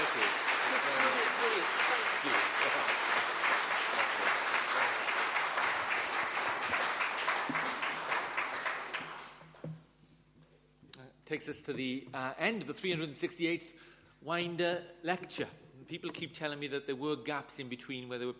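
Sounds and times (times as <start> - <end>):
audience applause: 0.0 - 9.4
speech: 11.3 - 18.3.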